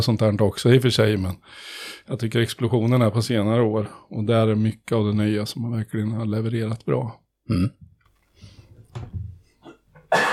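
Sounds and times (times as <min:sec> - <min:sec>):
speech: 0:00.0 - 0:07.9, 0:09.0 - 0:09.2
coughing: 0:07.5 - 0:07.9, 0:09.6 - 0:10.3.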